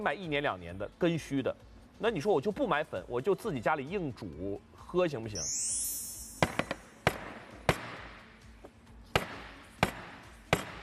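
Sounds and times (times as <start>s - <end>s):
speech: 0.0s - 5.9s
hard object pounding a table: 6.4s - 8.3s, 9.1s - 10.8s.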